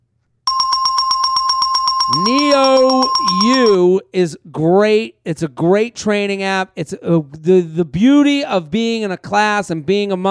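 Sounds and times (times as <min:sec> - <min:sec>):
bell ringing sound effect: 0:00.5 - 0:03.8
speech: 0:02.1 - 0:10.2.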